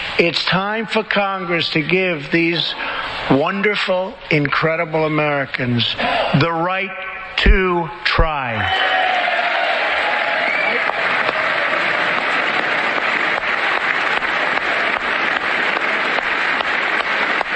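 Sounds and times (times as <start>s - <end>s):
speech: 0.2s - 8.9s
cheers and calls: 8.6s - 17.5s
large audience applauding: 8.8s - 17.5s.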